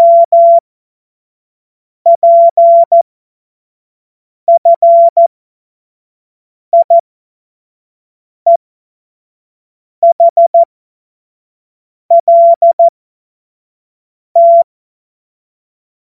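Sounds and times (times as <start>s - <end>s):
CW Morse code beeps: 0.0s - 0.6s, 2.1s - 3.0s, 4.5s - 5.3s, 6.8s - 7.0s, 10.0s - 10.7s, 12.1s - 12.9s, 14.4s - 14.7s.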